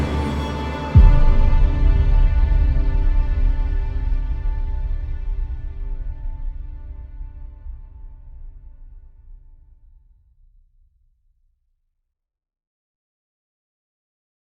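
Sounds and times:
dark creepy horror music: 0:00.0 - 0:07.9.

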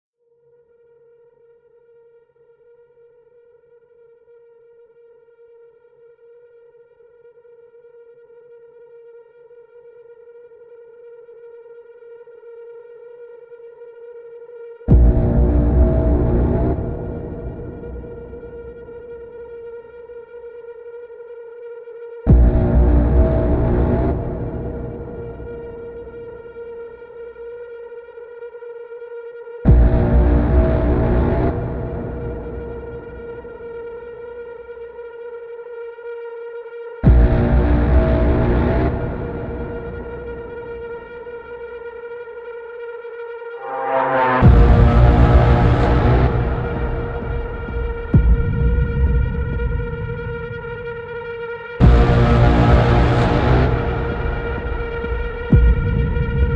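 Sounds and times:
epic dark horror build-up music: 0:14.9 - 0:19.6, 0:22.3 - 0:26.9, 0:29.7 - 0:34.3, 0:37.0 - 0:41.4, 0:43.4 - 0:56.5.

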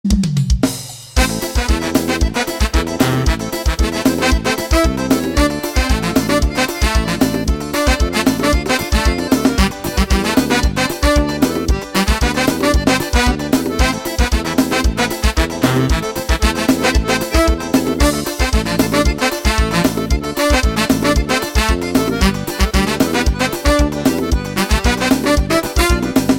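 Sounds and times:
live forro music: 0:00.2 - 0:26.3.

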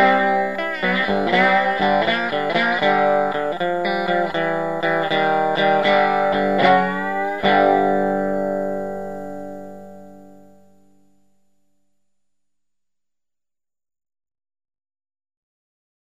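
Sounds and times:
blues music: 0:00.0 - 0:11.1.

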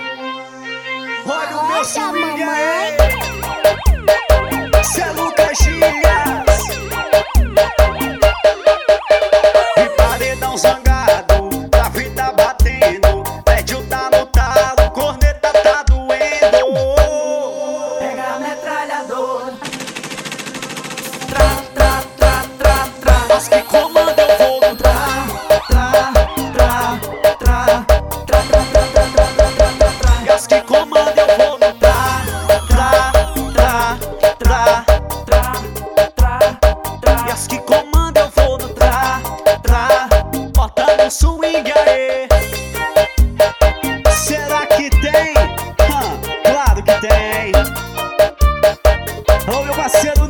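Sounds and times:
swing music: 0:01.3 - 0:17.4, 0:21.2 - 0:50.2.

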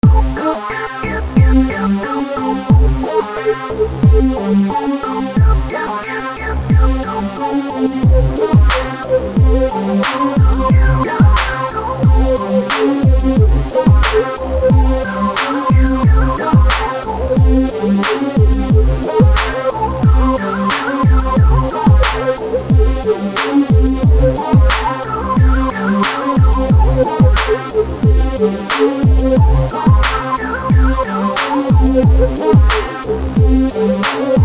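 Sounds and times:
rap trap beat: 0:00.0 - 0:34.4.

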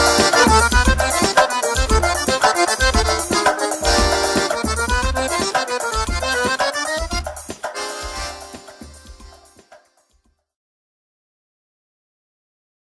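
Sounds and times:
forro music playing: 0:00.0 - 0:10.1.

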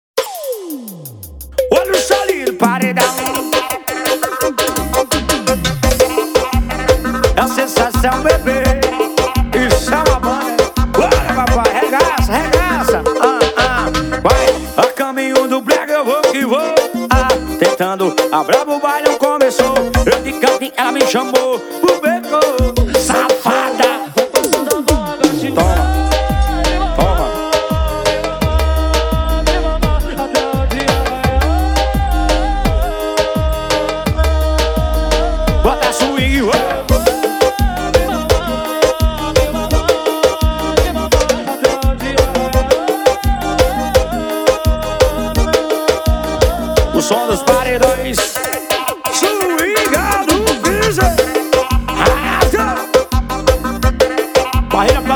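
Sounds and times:
brega music: 0:00.8 - 0:55.1.

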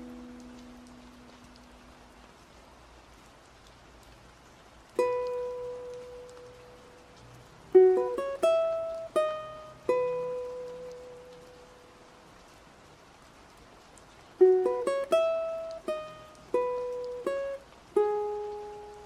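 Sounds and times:
ukulele at Dongmak Beach: 0:00.0 - 0:01.7, 0:04.9 - 0:07.0, 0:07.7 - 0:12.0, 0:14.4 - 0:19.0
rain at Dongmak Beach: 0:00.0 - 0:19.0.

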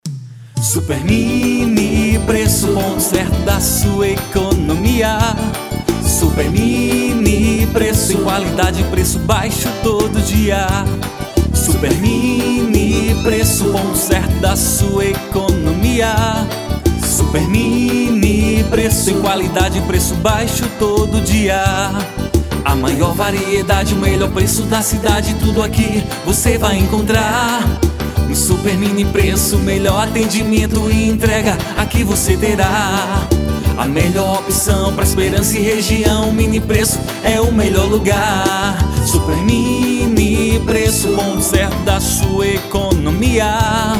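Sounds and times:
jingle: 0:01.0 - 0:43.9.

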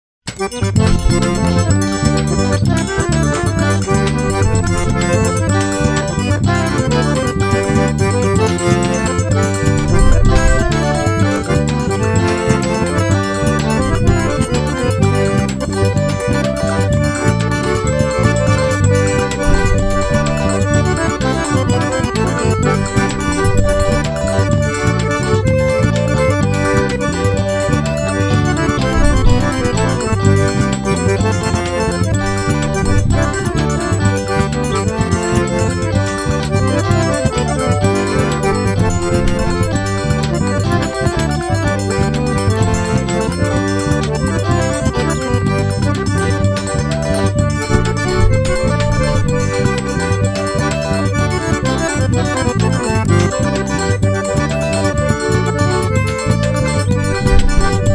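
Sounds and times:
accordion playing forro: 0:00.3 - 0:57.9.

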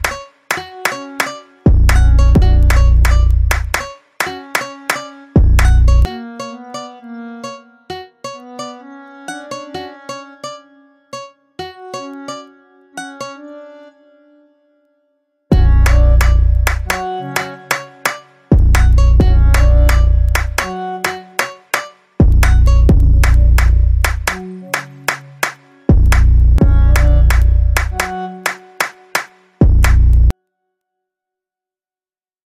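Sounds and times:
funk beat: 0:00.0 - 0:06.1, 0:15.5 - 0:30.3.

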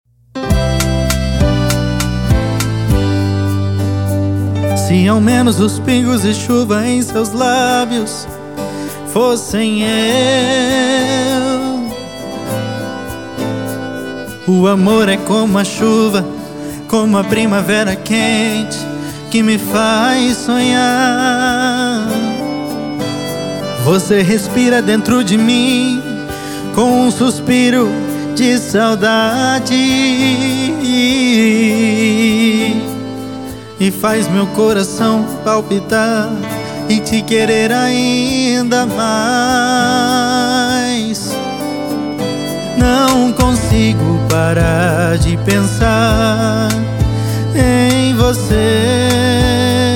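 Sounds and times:
sertanejo sofrencia song: 0:00.3 - 0:49.9.

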